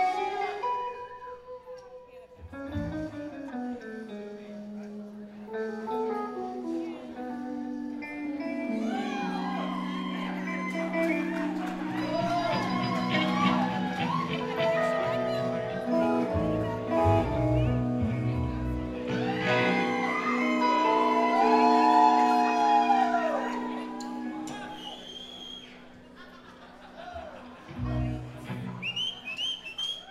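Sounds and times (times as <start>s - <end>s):
crowd: 0.0s - 30.1s
laughter: 9.0s - 17.0s, 25.6s - 29.8s.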